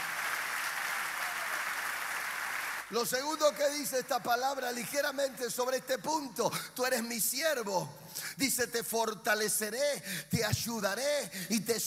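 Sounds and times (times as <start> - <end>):
crowd applause: 0.0 - 3.0
speech: 2.9 - 11.8.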